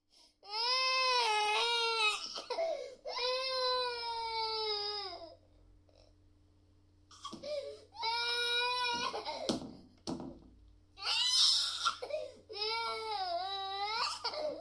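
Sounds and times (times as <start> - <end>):
baby crying: 0.5 - 5.4, 7.1 - 9.5, 11.0 - 14.5.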